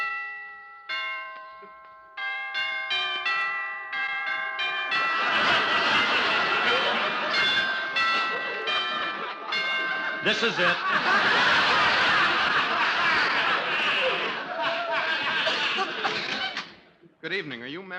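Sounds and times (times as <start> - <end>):
doorbell ringing at apartment door: 0.0 - 13.6
laughter: 4.9 - 16.8
speech: 10.2 - 11.7, 17.3 - 17.9.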